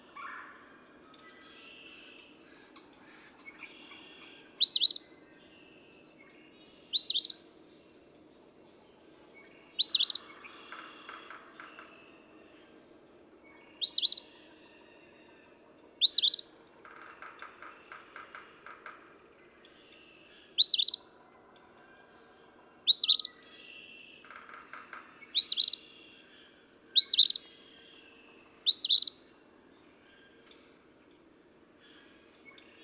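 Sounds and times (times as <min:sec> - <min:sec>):
other birds chirping and twittering: 0:03.5 - 0:05.0, 0:06.6 - 0:07.4, 0:09.7 - 0:10.4, 0:13.7 - 0:14.3, 0:16.0 - 0:16.4, 0:20.5 - 0:21.0, 0:22.9 - 0:23.4, 0:25.3 - 0:26.3, 0:26.9 - 0:27.6, 0:28.6 - 0:29.2
Eastern phoebe fee-bee song: 0:13.8 - 0:14.2, 0:20.6 - 0:21.0, 0:25.4 - 0:25.8, 0:27.0 - 0:27.4, 0:28.7 - 0:29.2.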